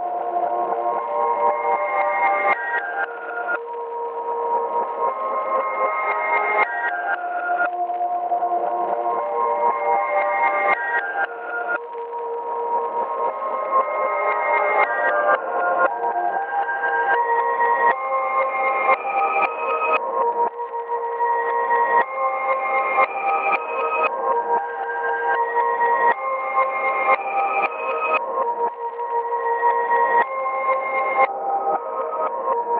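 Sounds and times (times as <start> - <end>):
calm music loop: 0.0 - 32.7.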